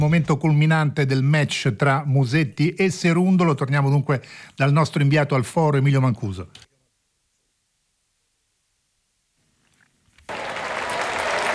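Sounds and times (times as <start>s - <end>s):
speech: 0.0s - 6.7s
tennis stadium crowd applause: 10.3s - 11.5s.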